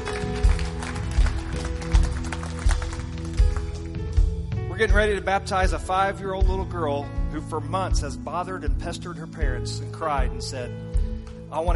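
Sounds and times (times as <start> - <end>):
audience clapping: 0.0 - 4.3
speech: 4.8 - 10.9, 11.5 - 11.7.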